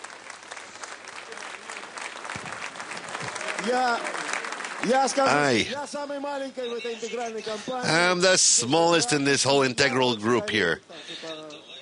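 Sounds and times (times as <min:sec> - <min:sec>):
audience applause: 0:00.0 - 0:06.1
speech: 0:03.6 - 0:04.2, 0:04.8 - 0:11.8.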